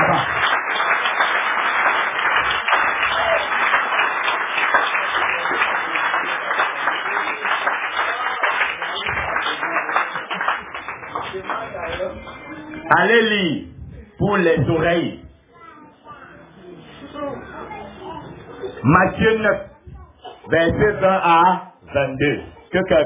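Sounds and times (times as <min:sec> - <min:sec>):
audience applause: 0:00.0 - 0:12.7
speech: 0:14.4 - 0:15.2, 0:18.9 - 0:19.7, 0:20.5 - 0:23.0.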